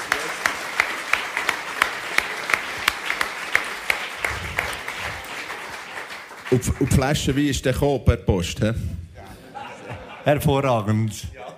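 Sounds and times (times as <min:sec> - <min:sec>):
applause: 0:00.0 - 0:07.8
speech: 0:06.5 - 0:09.0, 0:10.3 - 0:11.4
laughter: 0:09.2 - 0:11.5.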